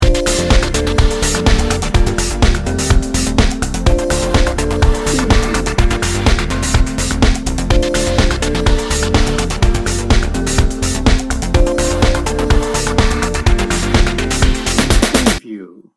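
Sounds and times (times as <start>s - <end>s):
trance dance loop: 0.0s - 15.4s.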